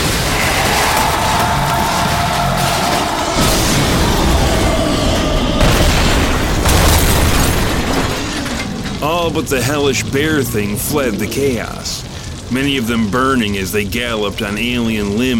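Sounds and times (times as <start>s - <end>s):
flaming car crashing and exploding: 0.0s - 9.8s
crackling debris: 0.0s - 15.3s
speech: 9.3s - 15.3s.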